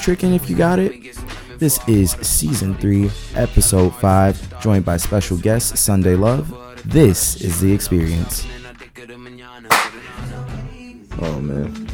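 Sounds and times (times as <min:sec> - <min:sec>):
speech: 0:00.0 - 0:09.2, 0:11.2 - 0:11.9
hand clap used as sync slate: 0:09.7 - 0:10.1.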